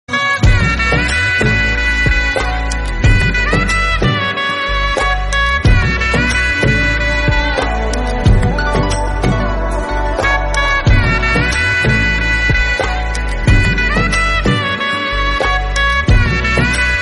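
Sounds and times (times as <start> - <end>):
instrumental music: 0.1 - 17.0.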